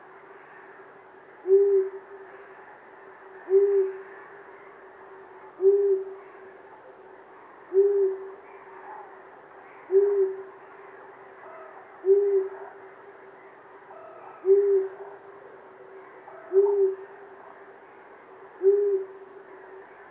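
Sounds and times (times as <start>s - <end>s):
long-eared owl giving low hoo notes: 1.4s - 2.0s, 3.5s - 4.1s, 5.6s - 6.2s, 7.7s - 9.1s, 9.8s - 10.5s, 11.4s - 12.7s, 13.9s - 15.2s, 16.3s - 17.2s, 18.6s - 19.6s.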